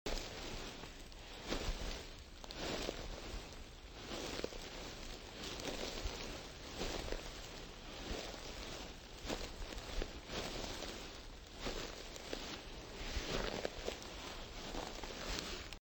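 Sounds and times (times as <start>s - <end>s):
footsteps on grass: 0.1s - 15.8s.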